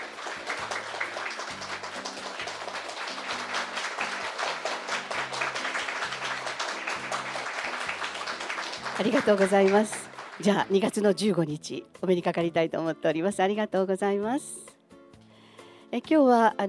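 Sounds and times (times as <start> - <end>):
audience applause: 0.0 - 10.9
speech: 9.0 - 14.6, 15.9 - 16.6.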